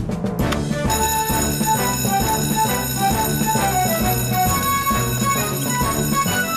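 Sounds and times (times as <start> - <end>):
fire alarm bell ringing: 0.9 - 6.5.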